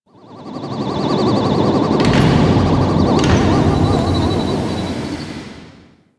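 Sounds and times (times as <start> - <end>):
ship generator starting and stopping: 1.4 - 6.1.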